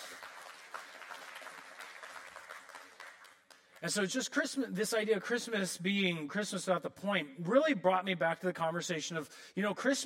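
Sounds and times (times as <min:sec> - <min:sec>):
crowd clapping: 0:00.0 - 0:04.1
speech: 0:03.8 - 0:10.0.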